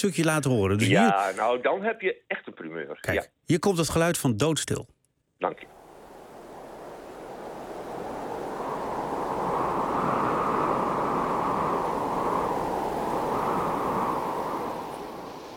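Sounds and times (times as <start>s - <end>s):
speech: 0.0s - 5.8s
light breeze of wind: 5.6s - 15.5s.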